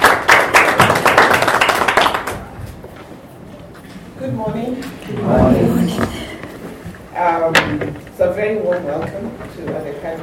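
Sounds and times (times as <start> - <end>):
audience applause: 0.0 - 2.6
speech: 4.3 - 6.1, 7.5 - 10.2.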